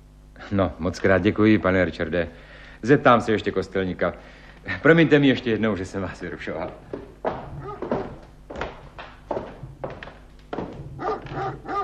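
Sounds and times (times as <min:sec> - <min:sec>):
speech: 0:00.4 - 0:07.1
dog barking: 0:07.5 - 0:08.2, 0:11.0 - 0:11.8.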